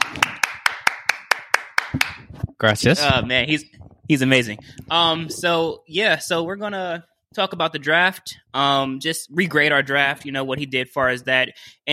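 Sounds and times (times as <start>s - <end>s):
quick hand claps: 0.0s - 2.5s
speech: 2.6s - 11.9s.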